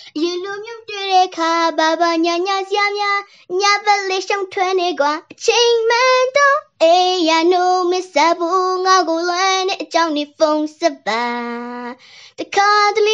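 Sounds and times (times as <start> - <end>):
girl singing recorded on a phone: 0.0 - 13.1.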